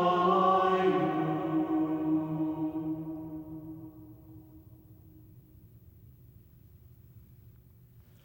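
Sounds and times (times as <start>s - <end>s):
simple Pentecost irmos chant: 0.0s - 4.9s.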